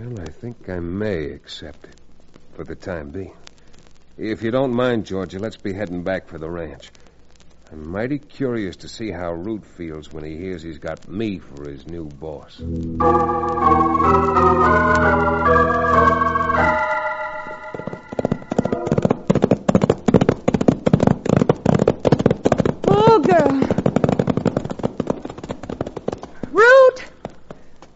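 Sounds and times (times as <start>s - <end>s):
speech: 0.0s - 2.0s, 2.6s - 3.5s, 4.2s - 7.0s, 7.7s - 16.8s
held musical chord: 12.6s - 19.2s
horses' hooves riding along: 18.1s - 27.9s.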